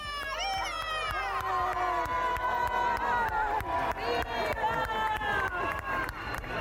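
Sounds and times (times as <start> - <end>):
crowd applause: 0.0 - 6.5.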